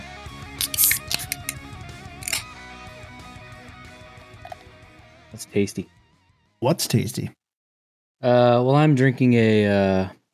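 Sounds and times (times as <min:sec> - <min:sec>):
beer cans cracking open: 0:00.6 - 0:01.6, 0:02.2 - 0:02.5
speech: 0:05.4 - 0:06.0, 0:06.6 - 0:07.4, 0:08.2 - 0:10.2.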